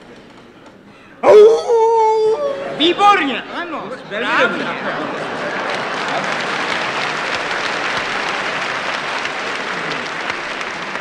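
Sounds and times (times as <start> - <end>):
person imitating a jackal's howl: 1.2 - 2.8
laughter: 2.2 - 10.9
speech: 2.8 - 5.5.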